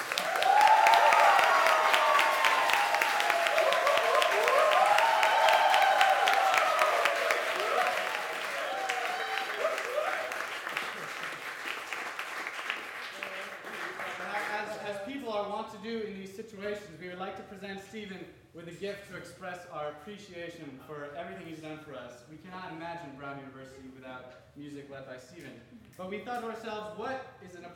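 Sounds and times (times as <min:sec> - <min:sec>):
audience applause: 0:00.0 - 0:14.8
speech: 0:18.8 - 0:27.7.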